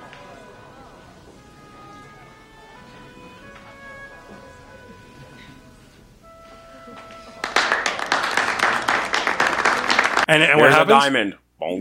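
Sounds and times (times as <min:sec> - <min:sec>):
applause: 0:07.0 - 0:10.5
speech: 0:10.3 - 0:11.7.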